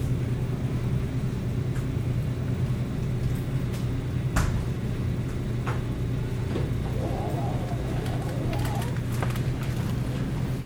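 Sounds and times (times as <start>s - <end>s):
grocery store background noise near the frozen foods section: 0.0s - 10.6s
freezer doors in a grocery store: 6.5s - 10.5s.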